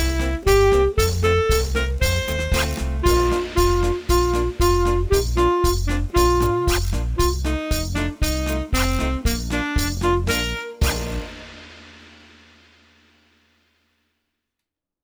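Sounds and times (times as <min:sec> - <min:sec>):
saxophone: 0:00.0 - 0:11.5.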